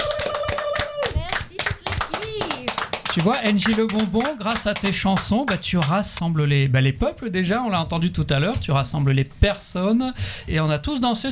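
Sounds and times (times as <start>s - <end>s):
audience clapping: 0.0s - 6.5s
speech: 3.2s - 11.3s.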